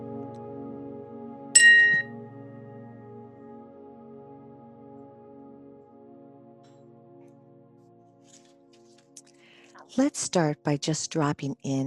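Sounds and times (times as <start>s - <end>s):
meditation chime: 1.6s - 2.5s
speech: 9.9s - 11.8s.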